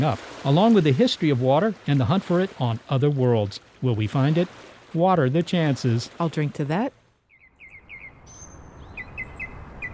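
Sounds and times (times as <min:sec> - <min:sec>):
speech: 0:00.0 - 0:07.0
birds chirping in a wetland: 0:07.2 - 0:09.9.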